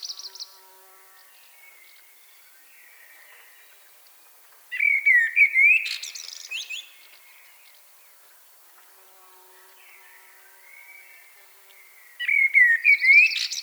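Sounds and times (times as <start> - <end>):
common blackbird song of fluted whistles and twitters: 4.8 - 7.0, 12.2 - 13.6.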